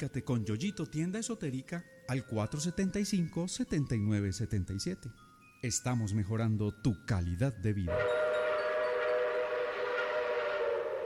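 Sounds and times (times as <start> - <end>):
speech: 0.0 - 8.4
train arriving toward Floresta station whining hum: 7.9 - 11.0.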